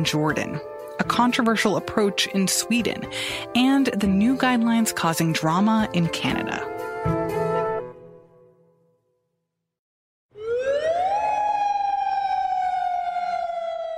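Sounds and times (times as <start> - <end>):
speech: 0.0 - 7.2
air raid style alarm siren: 10.3 - 13.9.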